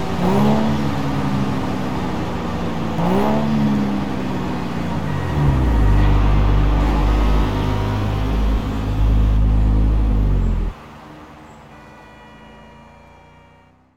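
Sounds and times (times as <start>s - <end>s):
Nissan Fairlady Z432 sports car: 0.0s - 13.9s.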